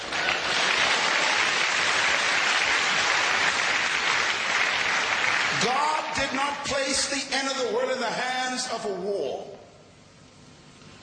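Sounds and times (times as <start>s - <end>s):
audience clapping: 0.0s - 6.7s
speech: 6.3s - 9.6s.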